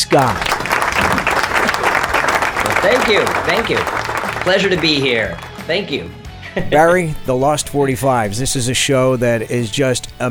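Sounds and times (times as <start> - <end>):
audience applause welcoming a guest onto a show: 0.0 - 5.8
speech: 0.1 - 0.5, 2.8 - 10.2
laughter: 0.6 - 5.6.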